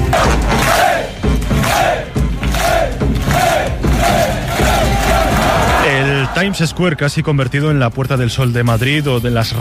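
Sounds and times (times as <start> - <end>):
crowd of football fans cheering: 0.2 - 7.7
speech: 6.4 - 9.5.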